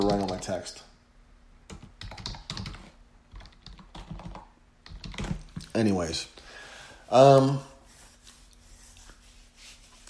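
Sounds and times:
fast typing on a computer keyboard: 0.0s - 0.6s, 1.7s - 5.7s
speech: 0.0s - 0.9s, 5.8s - 6.4s, 7.1s - 7.7s
faint steady hum: 0.0s - 10.0s.

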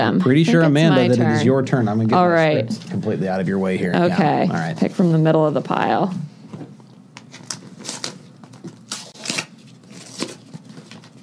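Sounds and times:
speech: 0.0s - 6.3s
envelope being torn open: 7.2s - 11.2s
paper ripping and crinkling: 7.3s - 11.2s.

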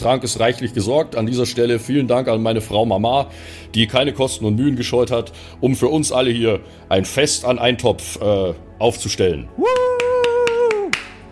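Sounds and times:
speech: 0.0s - 9.8s
vocal whoop: 9.6s - 11.2s
hand claps: 9.6s - 11.3s.

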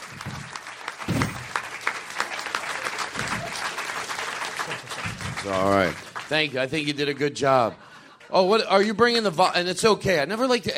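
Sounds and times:
live audience applauding: 0.0s - 7.1s
speech: 5.4s - 10.7s.

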